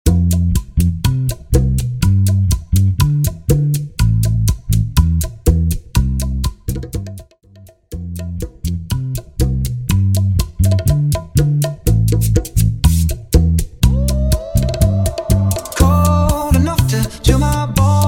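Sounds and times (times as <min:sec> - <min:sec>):
bachata music at 122 BPM: 0:00.1 - 0:18.0.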